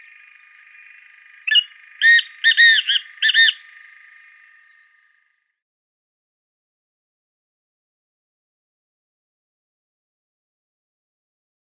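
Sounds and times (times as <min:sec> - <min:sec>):
male Black Francolin display call: 0:00.0 - 0:05.4.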